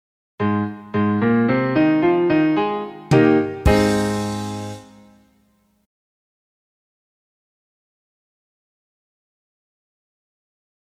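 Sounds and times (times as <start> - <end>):
music establishing A-flat major: 0.4 - 5.5.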